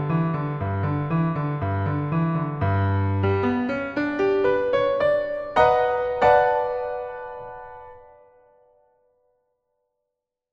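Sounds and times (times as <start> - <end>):
boogie music: 0.3 - 8.0.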